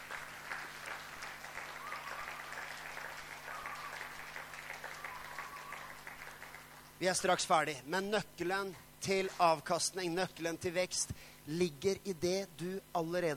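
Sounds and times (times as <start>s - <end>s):
audience applause for performers at a church gathering: 0.0s - 7.0s
speech: 7.0s - 13.3s.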